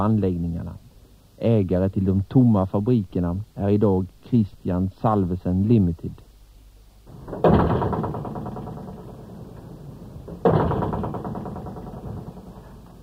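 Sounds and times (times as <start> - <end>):
speech: 0.0 - 0.8, 1.4 - 6.2
doors slamming with metallic ring: 7.1 - 13.0
wind moaning through pipes: 7.1 - 13.0.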